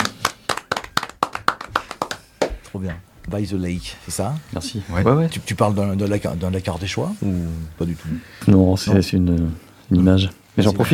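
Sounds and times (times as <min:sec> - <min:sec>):
audience clapping in unison: 0:00.0 - 0:02.7
speech: 0:02.8 - 0:10.9.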